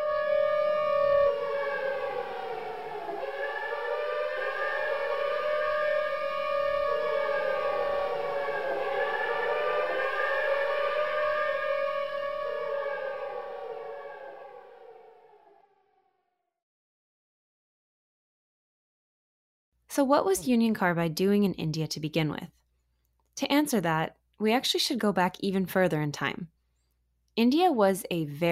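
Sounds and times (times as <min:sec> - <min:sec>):
Union Carbide factory alarm system: 0:00.0 - 0:16.5
speech: 0:20.0 - 0:22.6, 0:23.4 - 0:26.6, 0:27.4 - 0:28.5.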